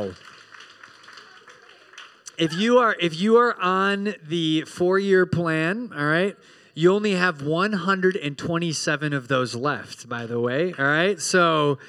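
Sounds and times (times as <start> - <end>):
speech: 0.0 - 0.4, 2.4 - 11.8
crowd clapping: 0.0 - 2.8.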